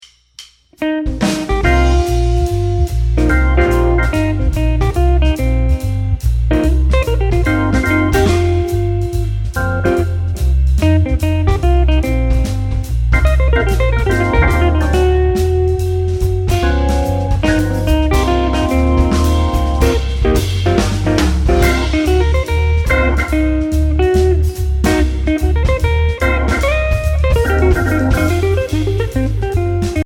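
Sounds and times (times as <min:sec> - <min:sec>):
C minor blues solo on jazz guitar: 0:00.8 - 0:30.0.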